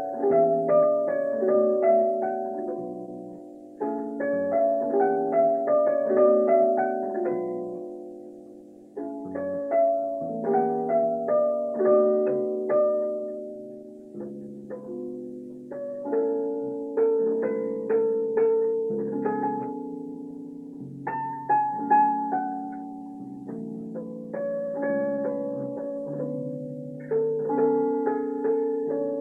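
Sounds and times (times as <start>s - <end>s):
piano: 0.0s - 29.1s.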